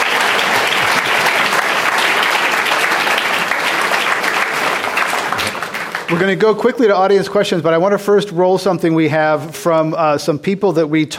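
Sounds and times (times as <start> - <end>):
audience applause at a live event on climate: 0.0 - 7.2
speech: 6.1 - 11.1.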